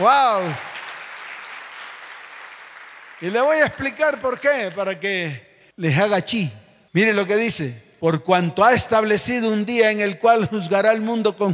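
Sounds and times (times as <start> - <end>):
speech: 0.0 - 0.7, 3.2 - 11.5
audience applause: 0.0 - 5.0.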